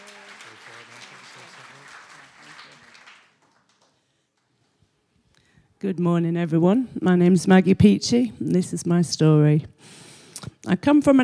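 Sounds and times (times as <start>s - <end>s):
audience applauding: 0.0s - 4.2s
speech: 5.8s - 10.0s, 10.6s - 11.2s.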